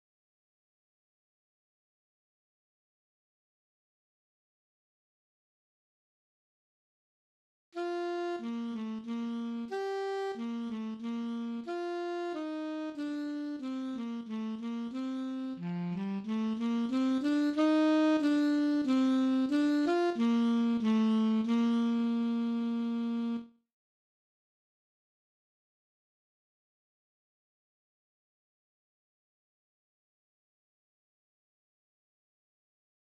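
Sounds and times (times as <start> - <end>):
alto saxophone playing a minuet: 7.8 - 23.6.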